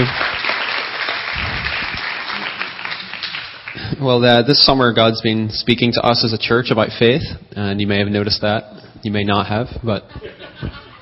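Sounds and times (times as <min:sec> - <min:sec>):
speech: 0:00.0 - 0:00.3, 0:04.0 - 0:11.0
church audience applauding to welcome a guest speaker: 0:00.0 - 0:04.0
laughter: 0:10.0 - 0:11.0.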